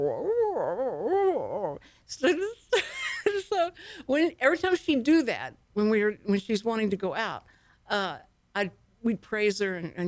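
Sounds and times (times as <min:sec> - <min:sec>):
person imitating a dog's quiet whining inside voice: 0:00.0 - 0:01.8
speech: 0:00.0 - 0:02.6, 0:03.6 - 0:10.0.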